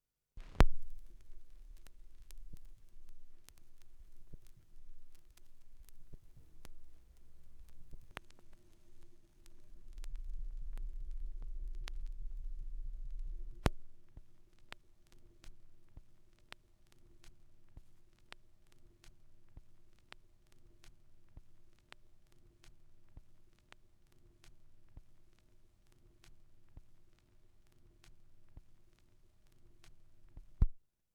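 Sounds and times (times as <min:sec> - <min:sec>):
vinyl record noise: 0:00.4 - 0:20.1.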